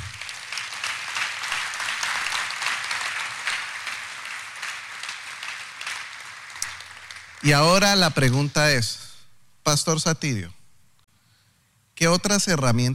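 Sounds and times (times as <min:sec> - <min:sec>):
audience applause: 0:00.0 - 0:08.3
speech: 0:07.4 - 0:10.6, 0:12.0 - 0:12.9.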